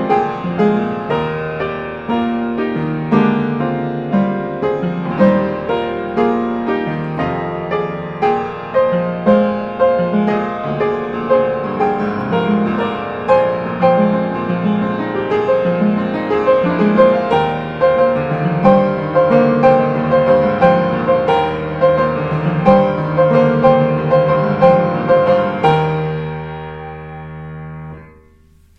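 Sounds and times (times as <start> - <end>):
piano: 0.0 - 28.7.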